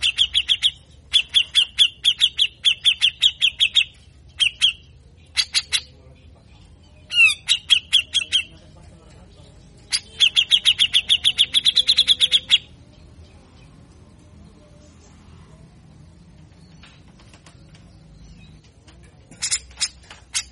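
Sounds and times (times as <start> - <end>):
grey-cheeked bulbul giving harsh chirps and rasping sweeps: 0.0 - 6.0, 7.0 - 8.6, 9.8 - 12.8.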